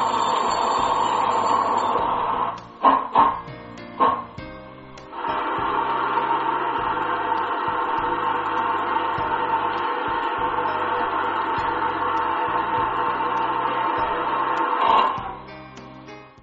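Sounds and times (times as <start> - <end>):
steam locomotive: 0.0 - 3.4, 5.1 - 15.4.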